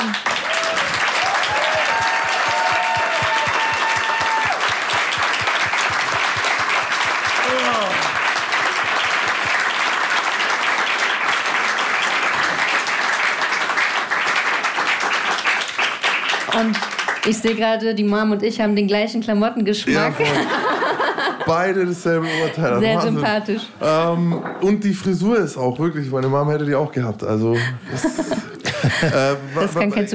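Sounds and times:
audience applause: 0:00.0 - 0:17.6, 0:20.0 - 0:21.6
speech: 0:17.4 - 0:20.6, 0:21.5 - 0:28.4, 0:29.0 - 0:30.1
laughter: 0:19.9 - 0:23.6, 0:27.6 - 0:29.8.

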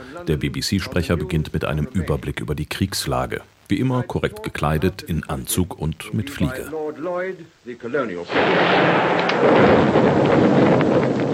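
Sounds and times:
speech: 0:00.1 - 0:11.3
German aerial bomb explosion: 0:08.3 - 0:11.3.

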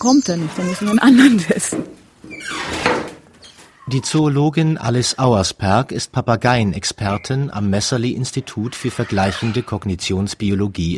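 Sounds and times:
speech: 0:00.0 - 0:02.0, 0:03.9 - 0:10.9
door between test room and outdoor aviary opening: 0:00.0 - 0:03.8
laughter: 0:01.0 - 0:01.7.

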